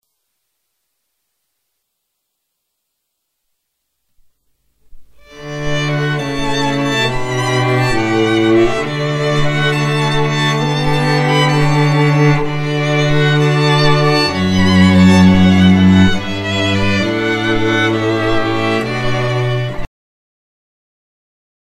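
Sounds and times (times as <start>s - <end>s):
string quartet: 5.2s - 19.9s.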